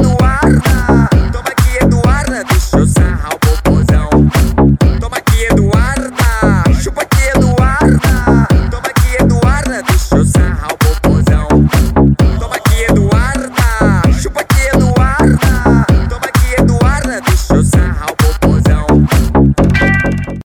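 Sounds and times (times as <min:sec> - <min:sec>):
extreme bass: 0:00.0 - 0:20.4.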